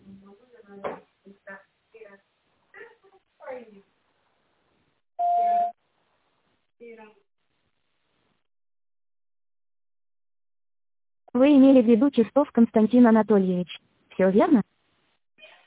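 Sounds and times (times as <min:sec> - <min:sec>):
beep tone on a company's automated phone answering system: 0:05.2 - 0:05.8
recorded voice prompt of an automated phone answering system: 0:11.4 - 0:14.6
speech: 0:11.4 - 0:14.7.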